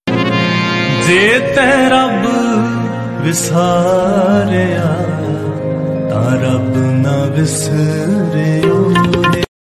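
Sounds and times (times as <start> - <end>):
Punjabi shabad gurbani kirtan singing: 0.9 - 9.5.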